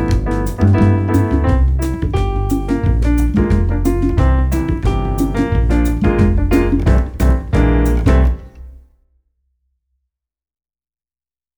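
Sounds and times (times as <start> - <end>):
Latin play-along music: 0.0 - 8.7.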